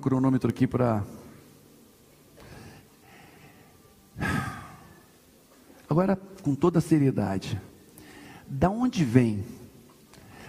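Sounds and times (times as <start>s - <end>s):
speech: 0.0s - 1.2s, 6.0s - 7.7s, 8.5s - 9.6s
deep breath drawn in and exhaled through the mouth: 2.4s - 5.0s, 8.0s - 8.5s, 10.2s - 10.4s.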